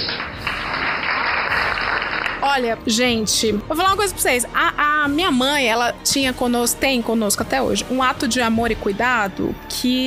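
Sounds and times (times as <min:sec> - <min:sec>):
applause: 0:00.0 - 0:02.8
speech: 0:02.6 - 0:10.0.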